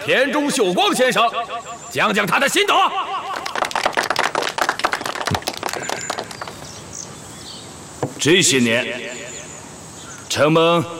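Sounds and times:
speech: 0:00.0 - 0:03.1, 0:08.2 - 0:09.4, 0:10.3 - 0:10.9
crowd applauding: 0:03.3 - 0:06.8.

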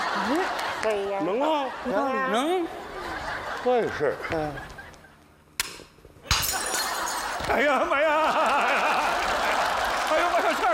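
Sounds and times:
laughter: 0:00.0 - 0:05.2, 0:06.8 - 0:10.7
speech: 0:00.3 - 0:02.9, 0:03.6 - 0:04.8, 0:07.5 - 0:08.9
porcelain shards clattering: 0:06.3 - 0:07.5
two heirloom porcelain vases shattering: 0:06.3 - 0:07.6.

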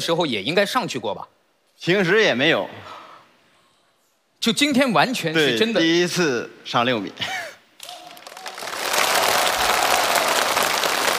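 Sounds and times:
speech: 0:00.0 - 0:03.0, 0:04.4 - 0:07.4
audience applause: 0:07.8 - 0:11.1.

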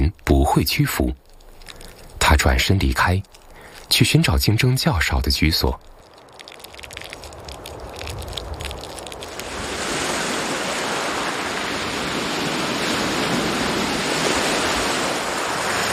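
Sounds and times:
speech: 0:00.0 - 0:01.3, 0:02.3 - 0:05.9
ocean waves washing into mangroves: 0:06.2 - 0:15.9.

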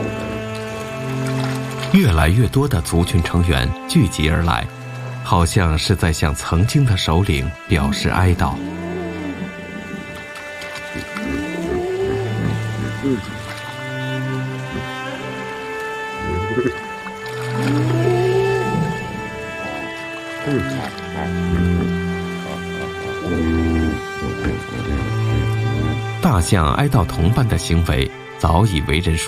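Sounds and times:
herd of hippos grunting and bellowing: 0:00.0 - 0:02.1, 0:06.7 - 0:28.0
low rumbling background: 0:00.0 - 0:28.8
speech: 0:01.9 - 0:08.8, 0:26.4 - 0:29.2.

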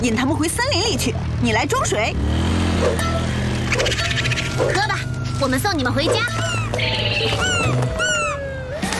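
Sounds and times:
speech: 0:00.0 - 0:07.8
kittens meowing: 0:03.8 - 0:08.9.

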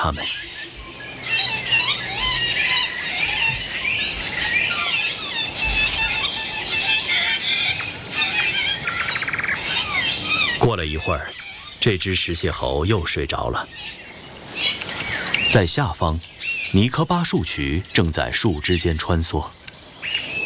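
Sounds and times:
speech: 0:00.0 - 0:00.6, 0:10.6 - 0:14.0, 0:15.5 - 0:19.6
parrots calling noisily while feeding: 0:00.0 - 0:19.2.

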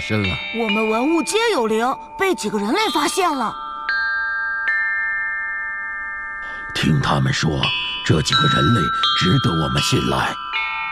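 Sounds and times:
speech: 0:00.0 - 0:03.6, 0:06.8 - 0:10.7
ancient bronze chime bells ringing: 0:00.0 - 0:10.9.

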